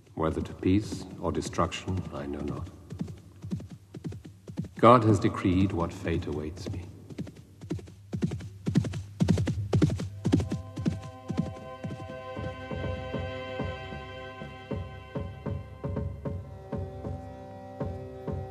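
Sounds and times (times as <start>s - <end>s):
horse hooves galloping: 0.0s - 18.4s
speech: 0.2s - 2.8s, 4.8s - 6.9s
low humming drone: 10.1s - 18.4s.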